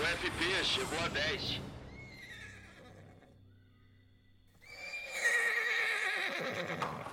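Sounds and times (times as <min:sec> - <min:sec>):
speech: 0:00.1 - 0:01.7
agitated mare neighing in a stable: 0:02.0 - 0:03.4, 0:04.6 - 0:07.1.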